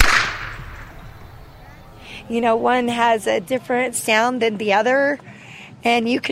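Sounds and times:
whip crack: 0.0 - 1.1
speech: 2.3 - 6.3.

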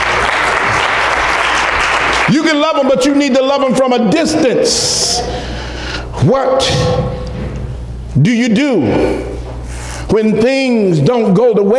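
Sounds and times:
audience hand claps: 0.0 - 2.9
speech: 2.4 - 5.5, 6.2 - 7.2, 8.2 - 9.3, 10.1 - 11.7.

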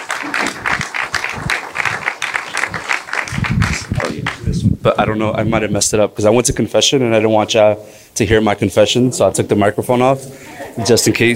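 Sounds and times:
audience applauding a speaker's introduction: 0.0 - 4.6
speech: 4.9 - 11.3.

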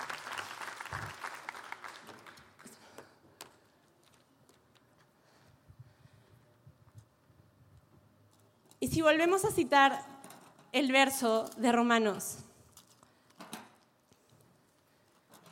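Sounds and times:
audience applause: 0.0 - 3.0
speech: 8.8 - 10.1, 10.8 - 12.4.

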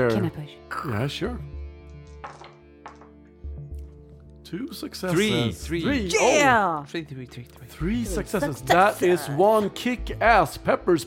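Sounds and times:
speech: 0.0 - 1.6, 4.5 - 11.0
dice rolling on a table: 2.2 - 3.2.

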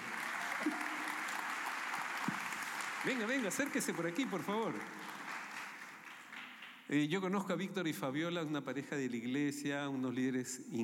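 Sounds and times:
audience applause: 0.0 - 6.8
speech: 3.0 - 5.0, 6.9 - 10.8.

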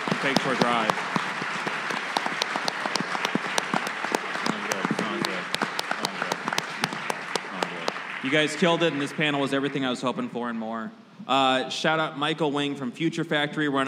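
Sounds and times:
audience applause: 0.0 - 10.4
speech: 0.2 - 1.1, 8.2 - 13.8.

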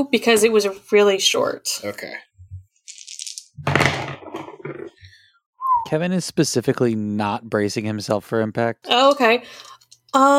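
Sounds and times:
speech: 0.0 - 2.3, 5.8 - 10.3
dice rattling in a hand: 2.9 - 3.6
dice clattering onto a hard surface: 2.9 - 4.9.

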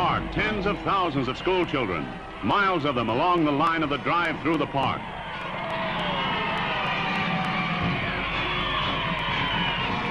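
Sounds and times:
immense crowds cheering on Fifth Avenue: 0.0 - 10.0
speech: 0.2 - 5.5.

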